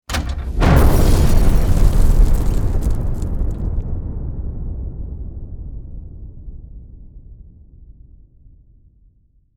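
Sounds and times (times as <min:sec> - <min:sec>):
explosion: 0:00.1 - 0:06.6.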